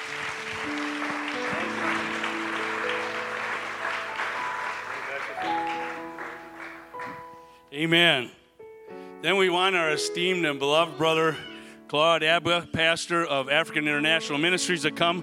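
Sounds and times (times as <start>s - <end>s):
audience clapping in praise: 0.0s - 7.6s
organ or keyboard chords: 0.0s - 15.2s
speech: 7.8s - 8.4s, 9.2s - 15.2s.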